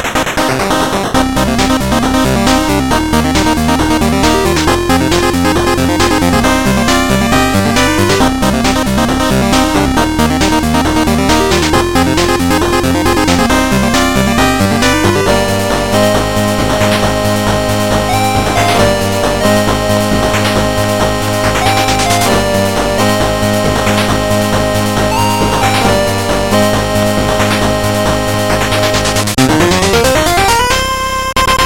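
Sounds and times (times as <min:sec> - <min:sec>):
8-bit chiptune sound: 0:00.0 - 0:31.6.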